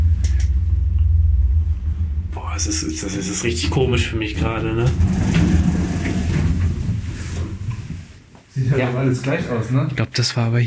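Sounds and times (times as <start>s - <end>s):
elevator running after the floor 5 button is pressed: 0.0s - 8.2s
speech: 2.6s - 5.4s, 8.7s - 10.6s.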